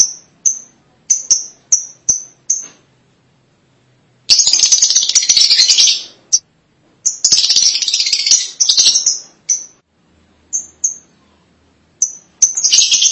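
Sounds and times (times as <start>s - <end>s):
lovebird chattering: 0.0s - 2.7s, 4.3s - 6.4s, 7.0s - 9.8s, 10.5s - 11.4s, 12.0s - 13.1s.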